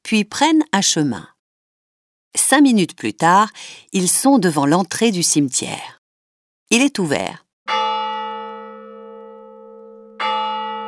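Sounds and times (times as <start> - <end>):
speech: 0.1 - 1.4, 2.3 - 6.0, 6.7 - 7.4
church clock bell striking midnight: 7.7 - 10.8.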